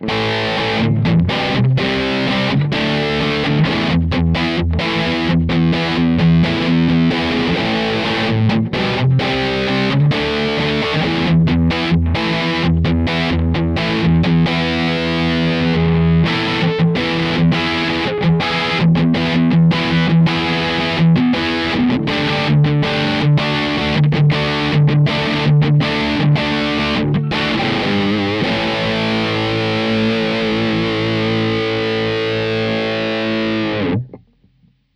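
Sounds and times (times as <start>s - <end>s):
Blackstar St. James guitar amp: 0.0s - 34.9s.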